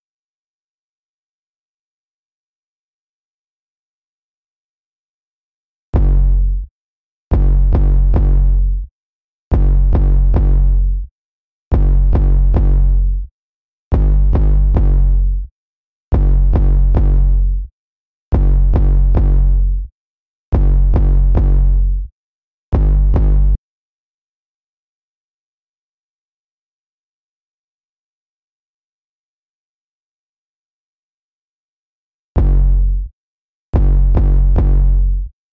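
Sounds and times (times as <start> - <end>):
bass: 5.9 - 11.1, 11.7 - 13.3, 13.9 - 23.6, 32.4 - 35.4.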